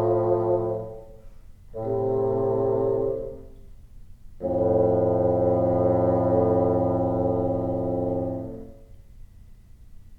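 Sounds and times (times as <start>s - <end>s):
bassoon: 0.0s - 3.7s, 4.4s - 9.0s.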